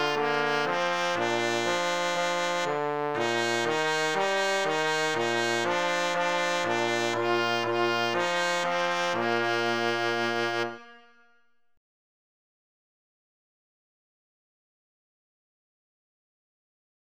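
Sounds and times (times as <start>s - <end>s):
Christmas trumpet and trombone duet: 0.0s - 11.0s.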